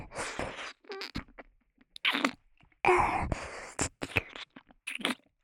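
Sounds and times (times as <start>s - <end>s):
ASMR ear licking in left and right ears: 0.6s - 2.4s, 3.8s - 5.2s.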